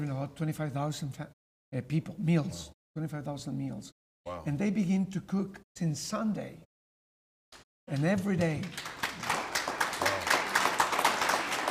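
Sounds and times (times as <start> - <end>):
speech: 0.0 - 6.7, 7.5 - 9.3
audience clapping: 7.9 - 11.6.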